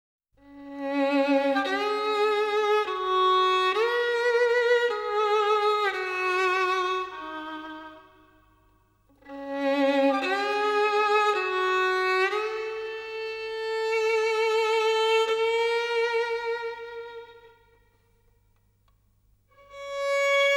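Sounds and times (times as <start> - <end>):
violin solo: 0.4 - 18.1, 19.5 - 20.5.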